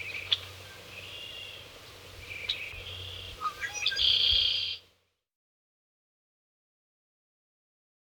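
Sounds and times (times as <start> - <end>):
blackbird singing: 0.0 - 1.6, 2.2 - 4.8.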